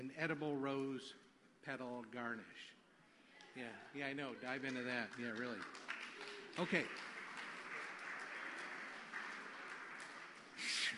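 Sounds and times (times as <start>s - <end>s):
speech: 0.0s - 2.8s, 3.6s - 5.9s, 6.6s - 7.1s
audience applause: 4.3s - 10.9s.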